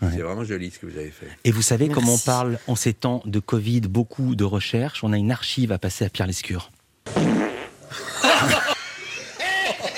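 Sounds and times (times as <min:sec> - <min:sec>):
speech: 0:00.0 - 0:07.3
comic fart sound of a fly: 0:07.1 - 0:08.0
laughter: 0:07.9 - 0:09.9.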